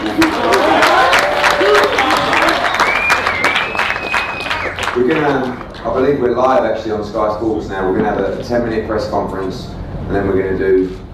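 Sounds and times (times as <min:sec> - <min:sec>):
audience round of applause: 0:00.0 - 0:06.6
whistles and cheers: 0:00.3 - 0:05.0
speech: 0:05.0 - 0:11.0.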